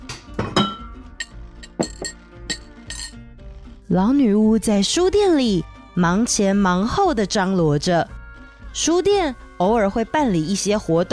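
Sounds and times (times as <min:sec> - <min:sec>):
porcelain and glass teaware clinking while making tea: 0:00.6 - 0:03.2
speech: 0:03.9 - 0:08.2, 0:08.8 - 0:11.1.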